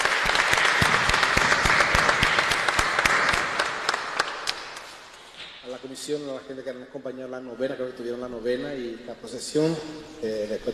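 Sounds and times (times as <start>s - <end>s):
audience applause: 0.0s - 4.9s
speech: 6.0s - 10.7s.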